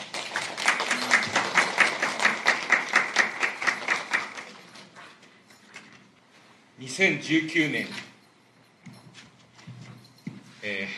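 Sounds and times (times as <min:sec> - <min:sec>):
small audience applause: 0:00.0 - 0:04.7
speech: 0:06.8 - 0:08.1.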